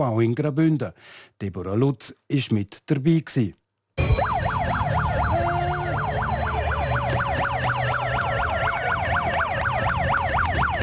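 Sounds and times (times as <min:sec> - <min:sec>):
speech: 0:00.0 - 0:03.6
climate protest alarm siren wailing: 0:04.0 - 0:10.8.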